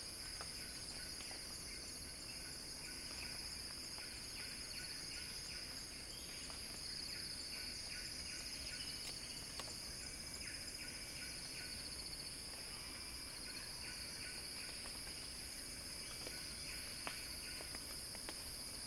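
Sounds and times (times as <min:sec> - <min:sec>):
cicada song: 0:00.0 - 0:18.8.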